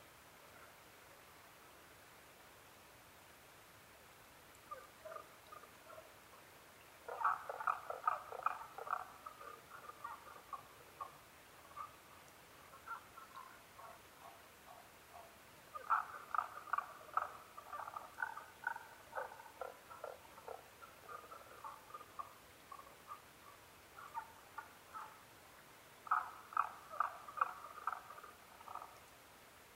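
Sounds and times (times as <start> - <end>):
Tago's brown frog calls: 4.6 - 6.1, 7.0 - 25.3, 26.0 - 29.1.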